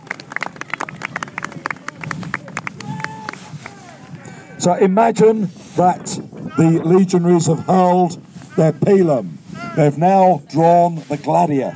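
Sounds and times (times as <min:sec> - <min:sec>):
audience applause: 0:00.0 - 0:04.1
faint voices murmuring: 0:00.0 - 0:11.7
speech: 0:04.6 - 0:11.7.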